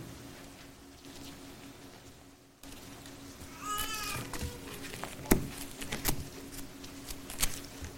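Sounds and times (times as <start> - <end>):
Bible pages rustling: 3.7 - 7.9.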